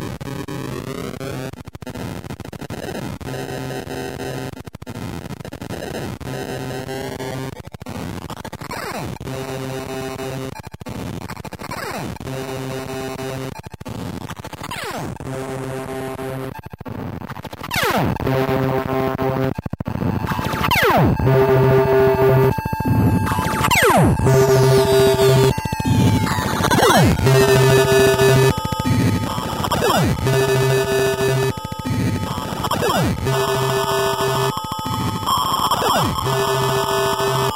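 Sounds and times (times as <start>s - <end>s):
synth noise: 18.2s - 37.5s.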